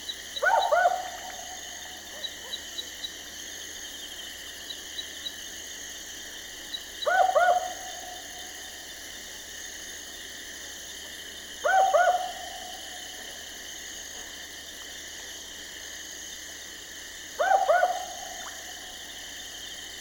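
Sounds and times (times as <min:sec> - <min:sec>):
Barking owl Ninox connivens double bark: 0:00.4 - 0:02.9, 0:07.0 - 0:08.3, 0:11.6 - 0:12.8, 0:17.4 - 0:18.8.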